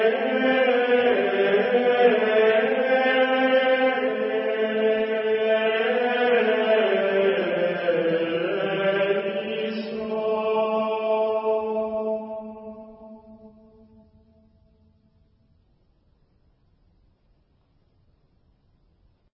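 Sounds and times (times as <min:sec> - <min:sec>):
Gregorian chant: 0:00.0 - 0:14.5.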